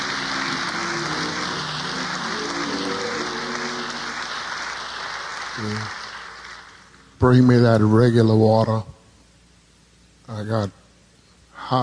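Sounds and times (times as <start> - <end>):
audience applauding: 0.0 - 7.1
speech: 5.6 - 6.0, 7.2 - 9.0, 10.3 - 10.8, 11.6 - 11.8.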